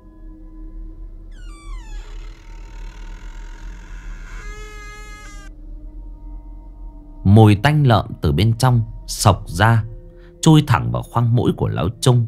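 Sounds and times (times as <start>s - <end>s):
dry unoiled old door creaking open: 1.3s - 5.5s
speech: 7.4s - 12.2s.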